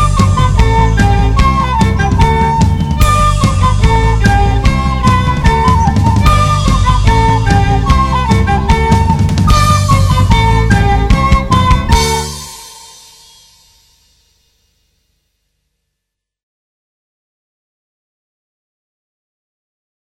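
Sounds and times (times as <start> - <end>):
melody with flutes: 0.0 - 13.8.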